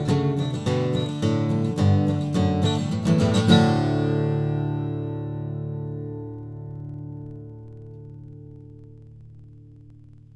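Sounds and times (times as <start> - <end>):
cocobolo acoustic guitar in DADGAD tuning: 0.0 - 10.0.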